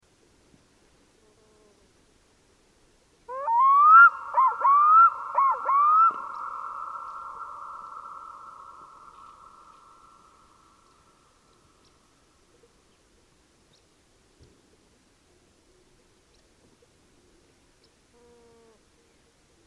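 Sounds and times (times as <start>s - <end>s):
black-throated loon wailing: 3.3s - 8.9s.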